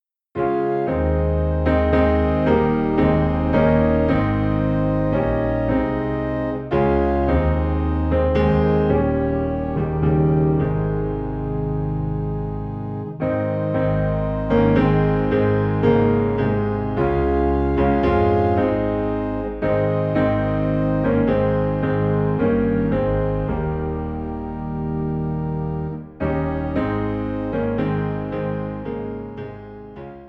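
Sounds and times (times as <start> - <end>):
low piano in A flat: 0.0 - 30.2
low organ in A flat: 0.4 - 29.9.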